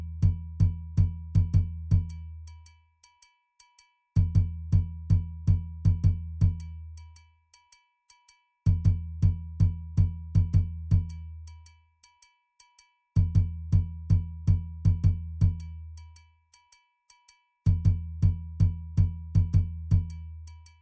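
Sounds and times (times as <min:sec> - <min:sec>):
doundoumba bass drum playing: 0:00.0 - 0:02.2, 0:04.2 - 0:06.7, 0:08.7 - 0:11.2, 0:13.2 - 0:15.7, 0:17.7 - 0:20.2.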